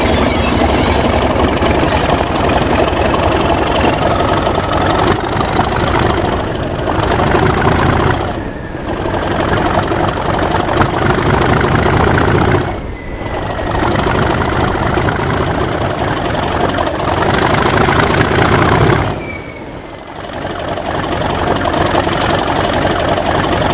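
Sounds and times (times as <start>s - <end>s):
BR Class 37 locomotive: 0.0s - 23.7s.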